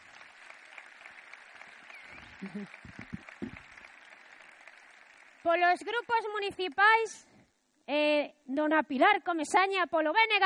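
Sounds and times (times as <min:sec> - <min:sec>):
audience applause: 0:00.0 - 0:05.6
laughter: 0:02.2 - 0:03.2
speech: 0:02.4 - 0:03.2, 0:05.4 - 0:07.3, 0:07.9 - 0:10.4.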